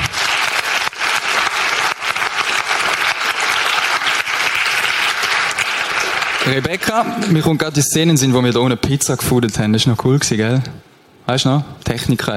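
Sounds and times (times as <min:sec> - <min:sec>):
audience applause: 0:00.0 - 0:07.6
speech: 0:06.5 - 0:12.3.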